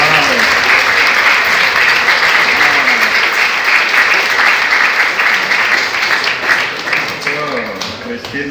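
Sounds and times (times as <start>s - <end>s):
audience applause: 0.0s - 8.4s.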